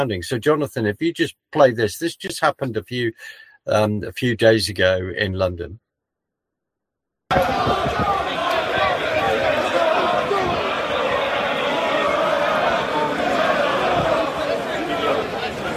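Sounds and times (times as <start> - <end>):
speech: 0.0 - 5.8
crowd at a protest march: 7.3 - 15.7.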